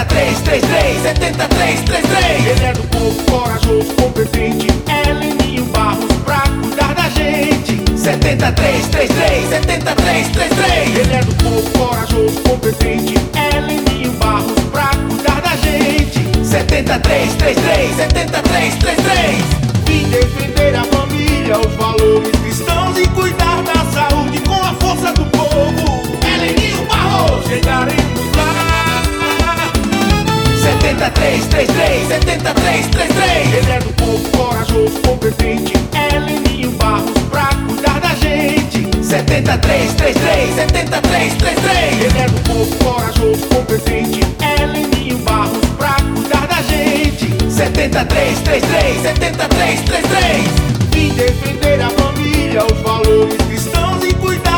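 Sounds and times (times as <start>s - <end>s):
jingle: 0.1s - 54.5s.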